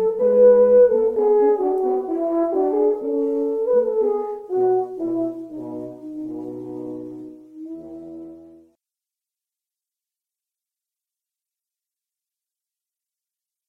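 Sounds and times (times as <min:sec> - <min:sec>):
two horns playing adagio: 0:00.0 - 0:08.7.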